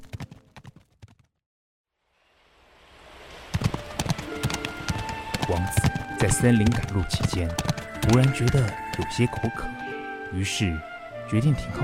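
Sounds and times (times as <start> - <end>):
white horse galloping with hooves clip-clopping: 0.0 - 1.3, 3.5 - 9.8
rushing noise: 2.0 - 8.2
speech: 6.2 - 11.8.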